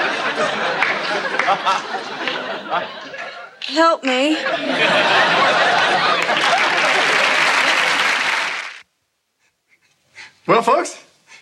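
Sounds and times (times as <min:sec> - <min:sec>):
people chuckling: 0:00.0 - 0:08.6
crowd applause: 0:00.0 - 0:08.8
speech: 0:01.5 - 0:07.0, 0:10.5 - 0:11.1.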